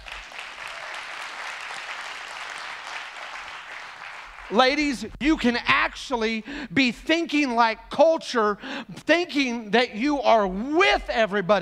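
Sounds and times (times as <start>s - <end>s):
audience clapping: 0.0s - 5.0s
speech: 4.5s - 11.5s.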